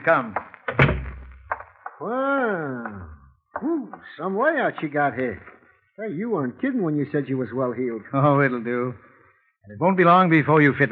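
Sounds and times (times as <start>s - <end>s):
speech: 0.0s - 0.4s, 2.0s - 10.9s
door opening: 0.7s - 1.6s.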